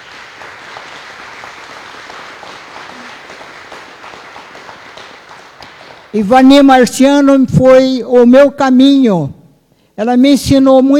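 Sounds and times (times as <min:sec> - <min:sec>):
audience applause: 0:00.0 - 0:06.1
speech: 0:06.1 - 0:09.4, 0:10.0 - 0:10.9.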